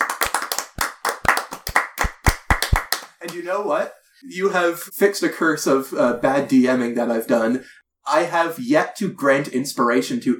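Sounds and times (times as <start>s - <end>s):
people clapping hands: 0.0s - 3.4s
speech: 3.2s - 10.3s.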